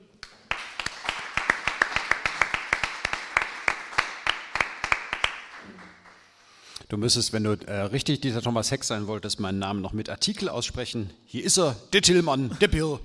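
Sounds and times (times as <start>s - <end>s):
audience clapping: 0.0s - 6.5s
speech: 6.9s - 13.0s.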